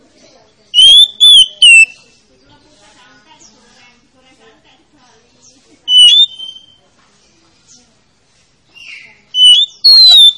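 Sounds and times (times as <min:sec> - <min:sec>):
Oriental magpie-robin song of bright whistled phrases: 0:00.8 - 0:02.0, 0:05.9 - 0:06.8, 0:08.7 - 0:10.3.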